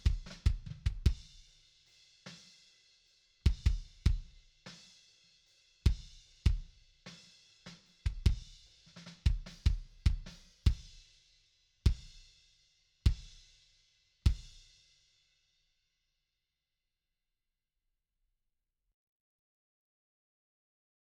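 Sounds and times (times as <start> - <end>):
kick drum: 0.0 - 1.4, 3.5 - 4.4, 5.9 - 6.8, 8.0 - 11.0, 11.9 - 12.2, 13.1 - 13.4, 14.3 - 14.6.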